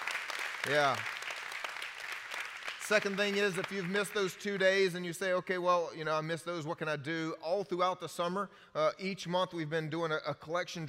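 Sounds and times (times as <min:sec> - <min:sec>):
audience clapping: 0:00.0 - 0:05.2
speech: 0:00.6 - 0:01.1, 0:02.9 - 0:10.8.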